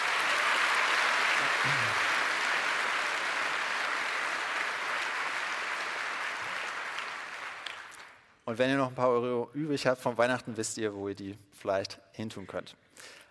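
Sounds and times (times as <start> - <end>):
audience applause for netzpolitik.org: 0.0 - 8.2
speech: 8.5 - 13.2.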